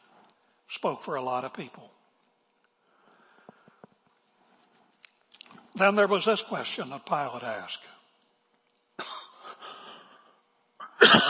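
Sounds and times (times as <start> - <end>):
speech: 0.7 - 2.0, 5.8 - 8.0
person coughing after swallowing wrong: 9.0 - 9.7, 10.8 - 11.2.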